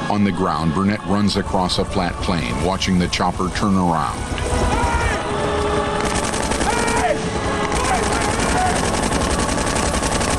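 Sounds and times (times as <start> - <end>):
speech: 0.1 - 4.7
rifle gunfire: 4.1 - 10.3.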